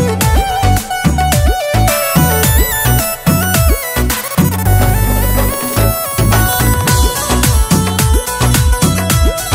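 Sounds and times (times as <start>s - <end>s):
ringtone: 0.2s - 9.4s.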